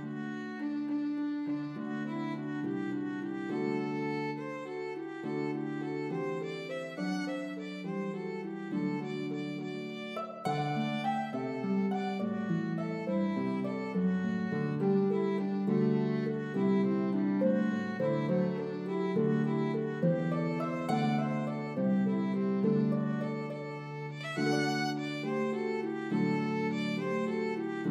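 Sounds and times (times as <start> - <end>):
harp: 0.0 - 27.8
violin melody in C: 0.0 - 27.8.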